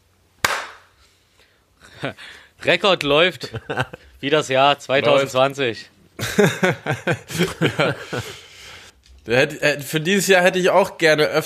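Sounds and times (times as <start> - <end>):
single sharp hand clap: 0.4 - 0.9
speech: 2.0 - 8.4, 9.2 - 11.4
laughter: 3.3 - 4.2, 6.2 - 8.9.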